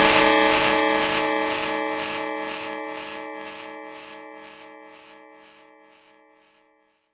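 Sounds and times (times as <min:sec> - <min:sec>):
cymbal: 0:00.0 - 0:03.2.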